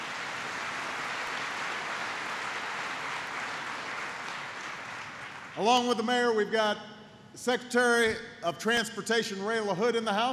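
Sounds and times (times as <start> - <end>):
crowd applause: 0.0 - 6.0
speech: 5.6 - 10.3.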